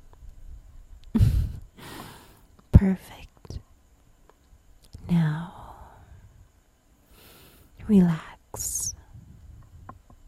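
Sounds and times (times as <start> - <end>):
person breathing: 1.2 - 2.4, 7.1 - 7.8
speech: 2.8 - 3.2, 7.9 - 8.8.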